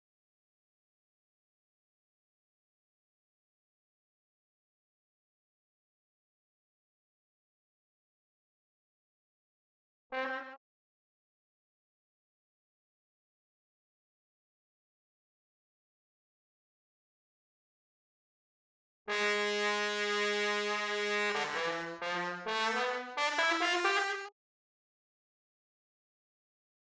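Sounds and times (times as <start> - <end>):
trombone: 10.1 - 10.6, 19.1 - 24.3.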